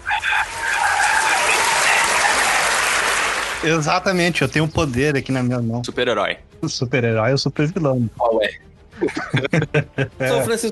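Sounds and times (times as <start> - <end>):
applause sound effect: 0.0 - 4.2
speech: 3.6 - 10.7
laughter: 9.0 - 10.5.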